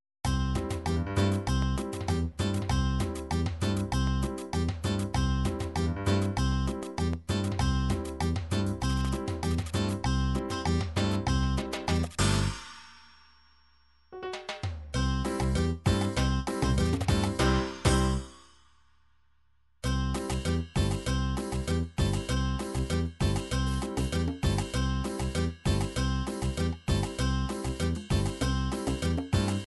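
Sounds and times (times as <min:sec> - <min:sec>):
MIDI Latin tropical cumbia music: 0:00.3 - 0:12.7, 0:14.2 - 0:18.4, 0:19.8 - 0:29.6.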